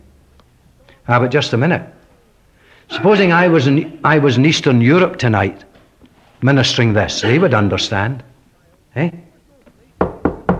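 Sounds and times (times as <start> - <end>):
speech: 1.1 - 2.0, 3.0 - 5.7, 6.4 - 8.3, 9.0 - 9.3
knocking at a door: 10.0 - 10.5.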